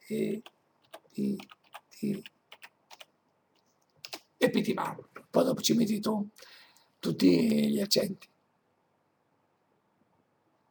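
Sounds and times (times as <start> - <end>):
speech: 0.1 - 0.6, 1.2 - 2.4, 4.4 - 8.3
typing a word on a computer keyboard: 0.3 - 3.1, 4.0 - 4.2.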